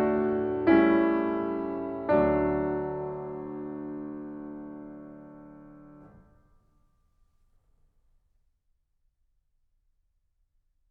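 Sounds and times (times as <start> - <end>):
classical prelude and fugue in D major: 0.0 - 5.7.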